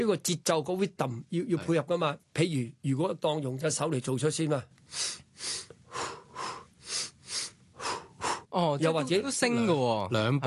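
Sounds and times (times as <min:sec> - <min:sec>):
speech: 0:00.0 - 0:06.1, 0:08.5 - 0:10.4
person breathing deeply: 0:04.9 - 0:08.6.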